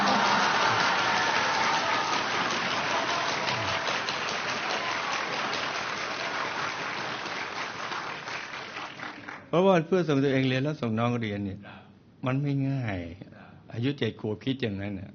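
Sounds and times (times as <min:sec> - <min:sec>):
applause, clapping hands: 0:00.0 - 0:09.5
speech: 0:09.5 - 0:15.1.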